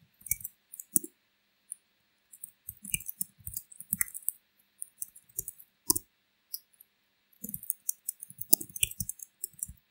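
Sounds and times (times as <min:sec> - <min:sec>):
computer mouse clicking while filling in a sign-up form: 0:00.2 - 0:01.1, 0:02.4 - 0:06.7, 0:07.4 - 0:09.8.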